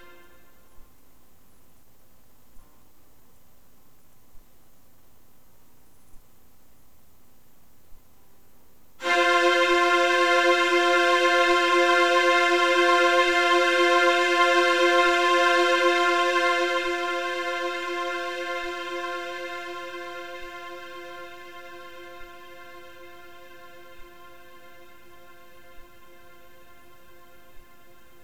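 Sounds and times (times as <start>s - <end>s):
string instruments backing track: 0.0s - 0.7s, 9.0s - 28.2s.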